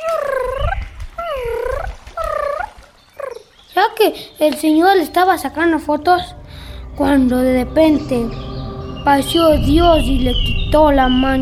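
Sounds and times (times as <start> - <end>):
voice imitating a small bird screaming: 0.0 - 3.5
speech: 4.0 - 6.4, 7.0 - 11.4.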